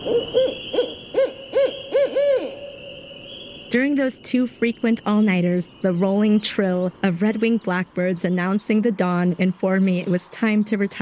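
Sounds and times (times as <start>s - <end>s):
barred owl caterwauling call: 0.0s - 6.4s
speech: 3.7s - 11.0s.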